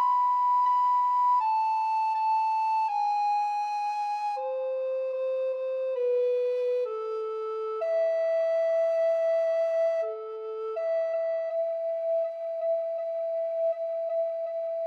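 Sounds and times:
alto recorder duet playing a pavane: 0.0 - 14.8.

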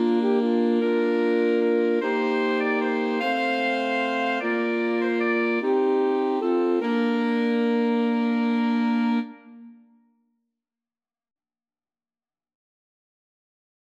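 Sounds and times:
alto sax quartet playing a folk tune: 0.0 - 9.8.

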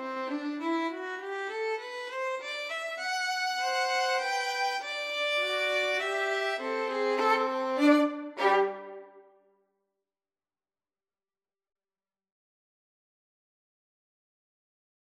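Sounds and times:
violin duet: 0.0 - 9.3.

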